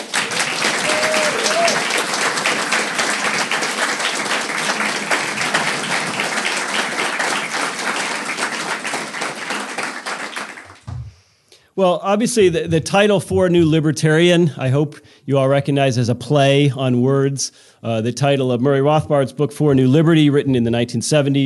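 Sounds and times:
audience applause: 0.0s - 10.9s
speech: 11.8s - 21.4s.

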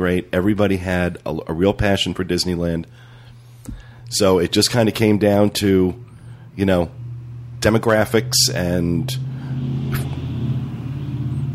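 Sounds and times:
speech: 0.0s - 3.1s, 4.1s - 7.0s, 7.6s - 10.0s
car driving by outside: 5.9s - 11.5s.

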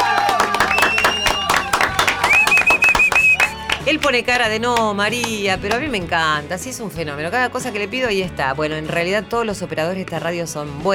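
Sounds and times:
cheering voices: 0.0s - 3.9s
crowd applause: 0.0s - 4.1s
high sustained whistle-like tone: 2.3s - 3.5s
speech: 4.1s - 10.9s.

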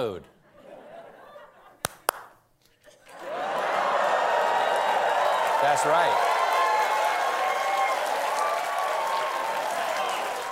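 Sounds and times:
speech: 0.0s - 0.3s, 5.6s - 6.3s
laughter: 0.4s - 1.9s
applause sound effect triggered by a clapper: 3.5s - 10.5s.

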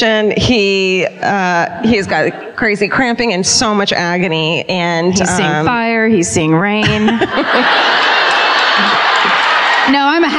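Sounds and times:
speech: 0.0s - 9.0s
laughter: 1.8s - 2.9s, 6.8s - 10.3s
audience cheering: 7.4s - 10.3s.

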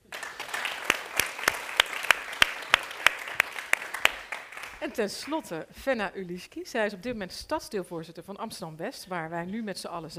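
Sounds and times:
audience applause: 0.0s - 5.0s
speech: 4.8s - 10.1s.

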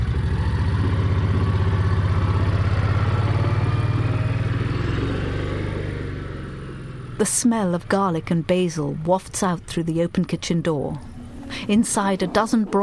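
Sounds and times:
small garden cart engine chugging: 0.0s - 12.8s
speech: 7.2s - 12.8s.

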